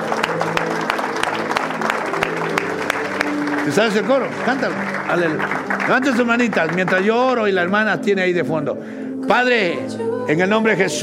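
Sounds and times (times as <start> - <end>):
audience applause: 0.0 - 8.2
speech: 3.7 - 11.0.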